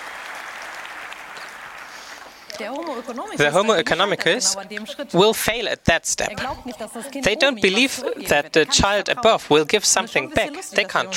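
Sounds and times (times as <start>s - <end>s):
crowd applause: 0.0s - 4.6s
speech: 2.6s - 11.1s.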